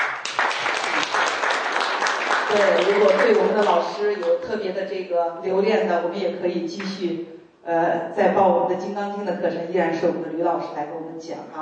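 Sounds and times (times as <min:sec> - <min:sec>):
audience applause thanking a teacher at a Heart Sutra class: 0:00.0 - 0:03.8
speech: 0:02.5 - 0:11.6.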